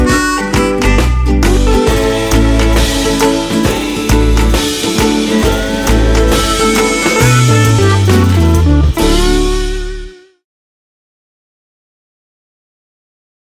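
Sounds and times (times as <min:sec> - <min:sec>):
reggae ukulele: 0:00.0 - 0:10.3.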